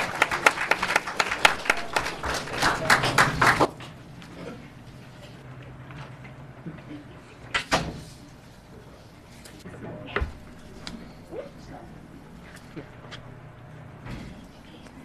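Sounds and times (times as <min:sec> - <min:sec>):
audience applause: 0:00.0 - 0:04.0.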